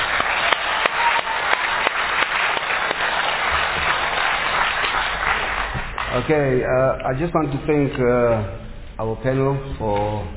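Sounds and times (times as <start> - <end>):
audience applause: 0.0 - 6.6
speech: 6.2 - 10.3.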